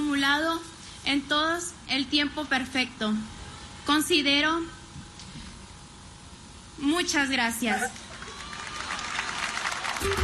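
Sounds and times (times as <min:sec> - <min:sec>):
speech: 0:00.2 - 0:04.8, 0:06.8 - 0:08.0, 0:10.0 - 0:10.2
audience applause: 0:07.8 - 0:10.2.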